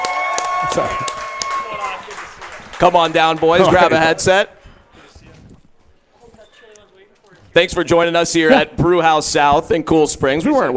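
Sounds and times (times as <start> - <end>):
crowd cheering and clapping for arriving guests: 0.0 - 4.3
speech: 0.7 - 1.2, 2.8 - 4.6, 7.6 - 10.7.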